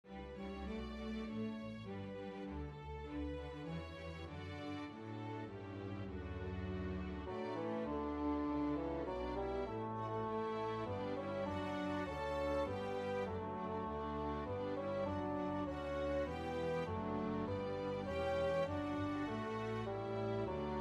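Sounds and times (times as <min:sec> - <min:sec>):
mini bassoon track with melody: 0:00.1 - 0:20.7.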